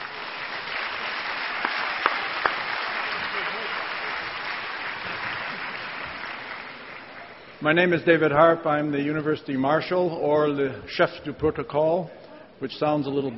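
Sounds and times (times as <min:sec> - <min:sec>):
audience applause at a university convocation ceremony: 0:00.0 - 0:07.6
speech: 0:07.6 - 0:13.3.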